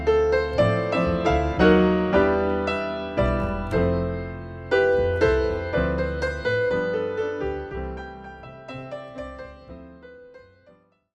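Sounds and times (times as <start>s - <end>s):
double bass: 0.0s - 6.7s
piano: 0.0s - 11.1s.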